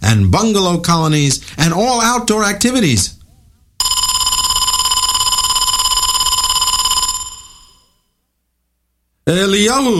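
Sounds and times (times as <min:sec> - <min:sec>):
speech: 0:00.1 - 0:03.2, 0:09.3 - 0:09.9
loud electric school bell ringing: 0:03.8 - 0:08.0.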